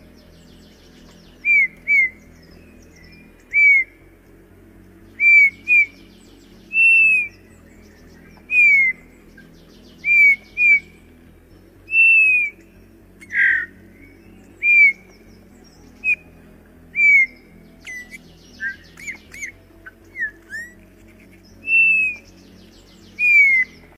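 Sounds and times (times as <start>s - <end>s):
Eurasian bullfinch soft descending piping whistles: 0.6s - 4.0s, 5.1s - 11.0s, 11.9s - 16.3s, 16.9s - 23.9s.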